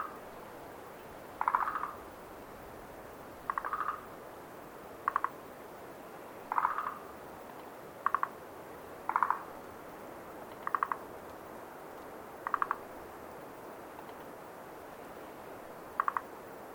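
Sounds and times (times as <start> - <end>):
frogs croaking at night at Lake Tazawa: 0.0 - 2.4, 3.2 - 4.2, 5.0 - 5.6, 6.4 - 7.4, 8.0 - 9.7, 10.4 - 11.2, 12.3 - 13.2, 15.8 - 16.5.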